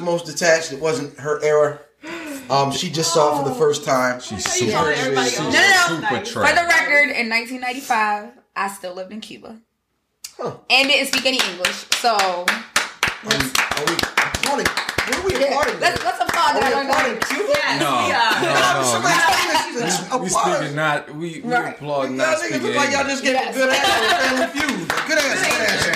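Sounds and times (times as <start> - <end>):
speech: 0.0 - 1.9, 2.5 - 9.7, 10.3 - 25.9
applause: 10.8 - 17.8, 24.2 - 25.9
laughter: 16.7 - 20.2, 23.4 - 25.9.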